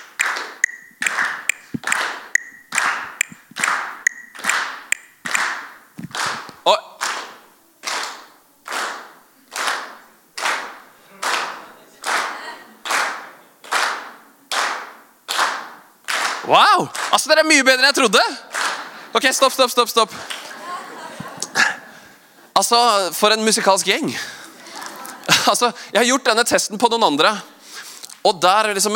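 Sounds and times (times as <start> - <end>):
audience clapping in rhythm on beats two and four: 0.0 - 21.8
speech: 6.6 - 6.9, 16.5 - 18.5, 19.1 - 20.3, 22.6 - 24.4, 25.5 - 27.5, 28.2 - 28.9
laughter: 20.1 - 22.0, 24.0 - 25.8.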